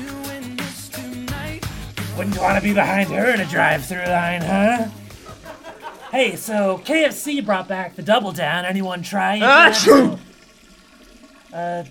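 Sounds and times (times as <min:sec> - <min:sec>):
speech: 0:02.2 - 0:05.0, 0:06.1 - 0:10.2, 0:11.5 - 0:11.8
laughter: 0:02.2 - 0:06.2
loud sneeze: 0:09.4 - 0:10.2
short tonal voiced sound: 0:09.4 - 0:10.2.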